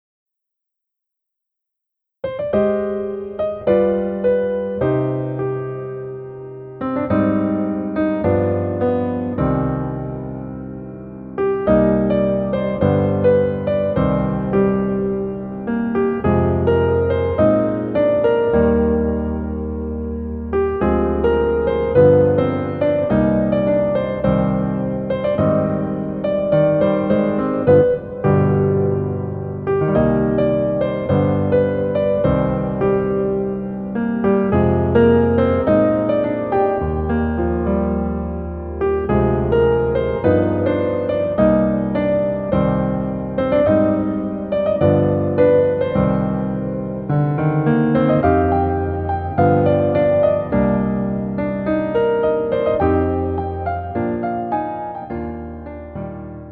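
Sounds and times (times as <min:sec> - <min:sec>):
piano melody backing track in male key: 0:02.2 - 0:56.4.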